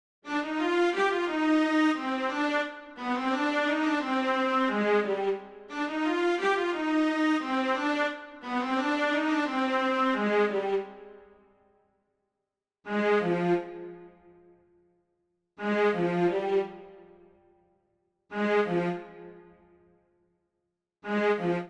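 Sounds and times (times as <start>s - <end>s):
strings: 0.2s - 11.2s, 12.9s - 14.3s, 15.6s - 17.2s, 18.3s - 19.7s, 21.0s - 21.6s.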